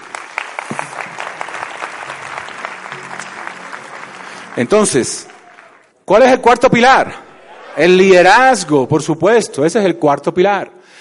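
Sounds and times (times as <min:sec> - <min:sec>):
audience applause: 0:00.0 - 0:06.0
speech: 0:04.6 - 0:05.3, 0:06.1 - 0:07.2, 0:07.8 - 0:10.8.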